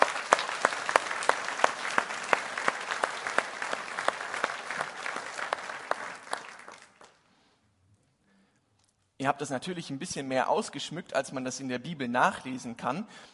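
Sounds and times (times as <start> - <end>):
audience applauding for children: 0.0 - 7.2
speech: 9.2 - 13.3.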